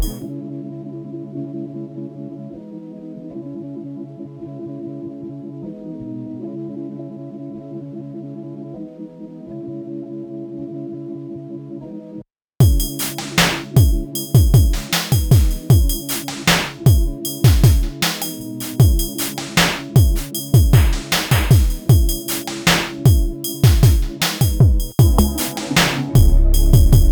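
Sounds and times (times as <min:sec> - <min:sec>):
abstract percussion: 0:00.0 - 0:00.2, 0:12.6 - 0:27.1.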